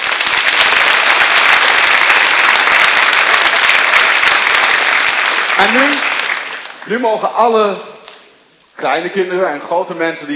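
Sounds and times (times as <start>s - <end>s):
audience applause in church: 0.0s - 7.0s
speech: 5.6s - 6.1s, 6.8s - 8.0s, 8.8s - 10.3s.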